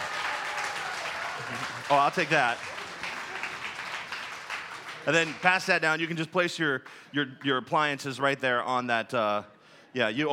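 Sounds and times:
audience applause: 0.0s - 5.9s
speech: 1.5s - 2.7s, 5.0s - 10.3s.

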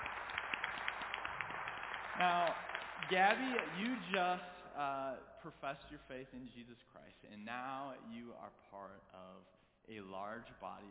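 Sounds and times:
audience applause: 0.0s - 4.5s
speech: 2.2s - 10.8s.

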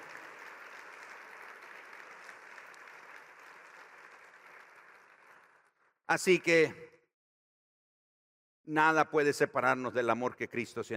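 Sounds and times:
audience applause: 0.0s - 5.8s
speech: 6.1s - 6.8s, 8.7s - 10.9s.

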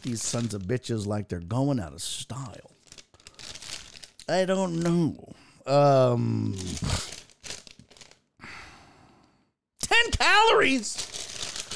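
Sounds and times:
cough drop wrapper crinkled open: 0.0s - 0.7s, 2.7s - 5.0s, 6.6s - 8.2s, 10.5s - 11.7s
speech: 0.0s - 2.8s, 4.3s - 7.2s, 10.1s - 11.2s
drawn-out voiced hum or groan: 5.7s - 7.1s.

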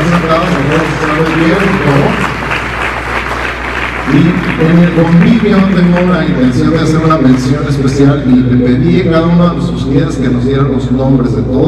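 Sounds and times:
crowd voices and cheers: 0.0s - 6.3s
crowd applause: 0.0s - 8.0s
speech: 4.7s - 11.6s.

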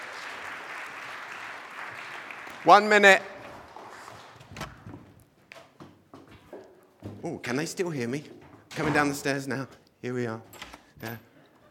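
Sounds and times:
crowd applauding: 0.0s - 4.3s
speech: 2.6s - 3.3s, 7.3s - 11.3s.

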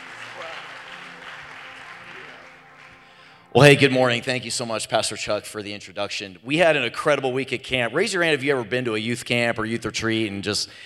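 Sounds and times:
church congregation applauding a speaker at a morning service: 0.0s - 4.2s
speech: 3.6s - 10.8s.

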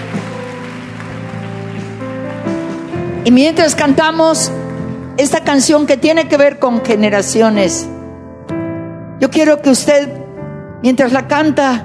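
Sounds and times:
audience applauding: 0.0s - 3.1s
sustained keyboard chords: 0.0s - 11.8s
speech: 3.2s - 8.0s, 9.2s - 10.2s, 10.8s - 11.8s.

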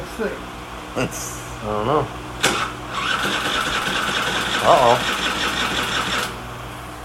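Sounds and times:
speech: 0.2s - 4.0s, 4.6s - 5.3s
86 Spree scooter engine cranking with no gas in it: 2.4s - 6.4s.

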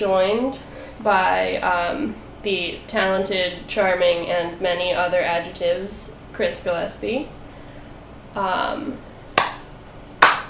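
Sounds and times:
speech: 0.0s - 7.4s, 8.4s - 9.1s
person clapping: 9.4s - 10.4s.

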